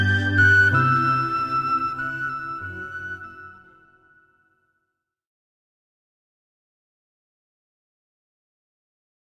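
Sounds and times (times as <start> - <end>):
music: 0.0 - 5.0.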